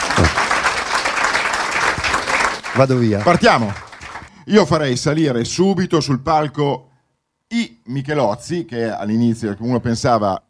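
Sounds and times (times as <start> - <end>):
audience at a stage event applauding: 0.0 - 4.4
speech: 2.8 - 3.8, 4.5 - 6.9, 7.5 - 10.4.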